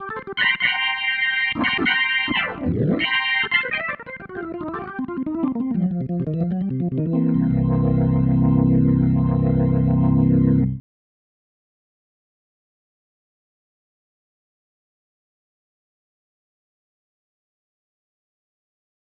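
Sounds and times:
organ ending music: 0.0s - 10.8s.

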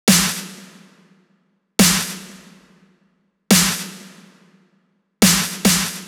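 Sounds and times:
140 BPM snare drum loop: 0.1s - 0.7s, 1.8s - 2.5s, 3.5s - 4.0s, 5.2s - 6.0s.

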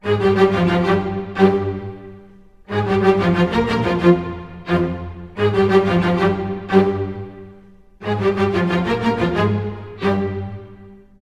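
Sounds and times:
strings playing in F minor: 0.0s - 11.2s.

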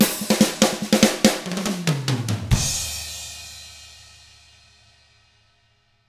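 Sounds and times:
rock drums in 6/8: 0.0s - 4.2s.

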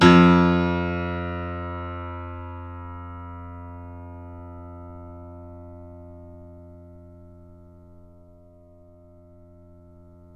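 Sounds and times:
grand piano note played fortissimo: 0.0s - 4.6s.

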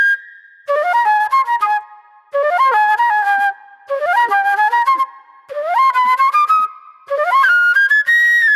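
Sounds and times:
raw funk flute: 0.0s - 1.8s, 2.4s - 8.5s.

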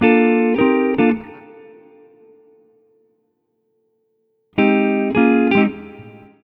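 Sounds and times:
multi-guitar swing: 0.0s - 2.0s, 4.6s - 6.3s.

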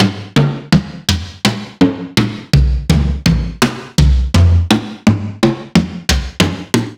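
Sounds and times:
acoustic toms: 0.0s - 6.9s.

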